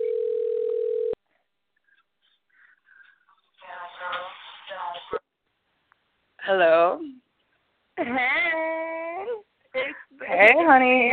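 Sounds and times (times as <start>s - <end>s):
telephone ringback tone while calling someone: 0.0s - 1.2s
speech: 6.5s - 7.2s, 8.0s - 8.5s, 10.4s - 11.1s.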